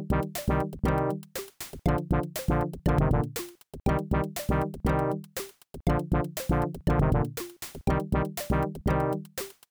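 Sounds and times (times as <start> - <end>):
heartbeat: 0.0 - 1.1, 1.9 - 5.2, 5.9 - 9.1.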